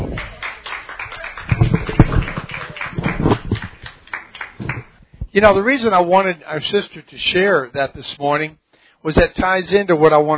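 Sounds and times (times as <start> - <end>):
audience clapping hands in applause: 0.0 - 5.0
speech: 5.4 - 10.3.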